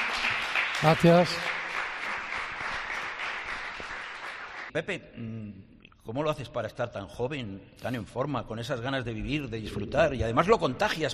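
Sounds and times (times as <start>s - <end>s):
audience applause at a live event at the Fundación San Valero: 0.0s - 4.7s
speech: 0.8s - 1.5s, 4.7s - 11.1s.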